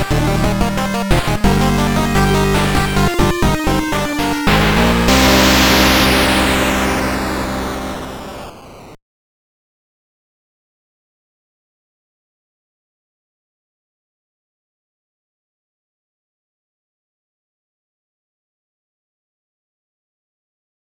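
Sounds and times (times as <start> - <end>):
power noise music: 0.0 - 9.0.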